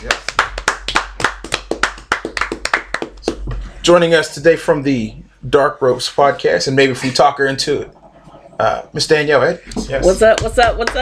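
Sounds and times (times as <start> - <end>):
hand clapping: 0.0 - 3.6, 9.8 - 10.9
speech: 3.8 - 8.0, 8.6 - 10.9.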